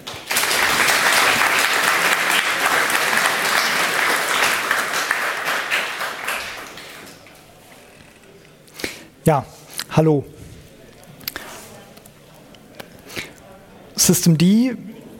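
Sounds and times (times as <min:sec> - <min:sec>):
audience applause: 0:00.0 - 0:07.5
speech: 0:09.3 - 0:10.4, 0:14.1 - 0:14.9.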